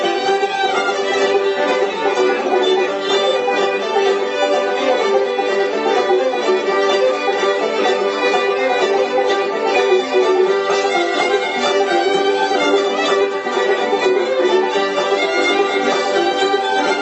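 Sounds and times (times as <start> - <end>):
banjo: 0.0 - 16.9
fiddle tuned GDGD: 0.0 - 16.9
ukulele: 0.0 - 16.9.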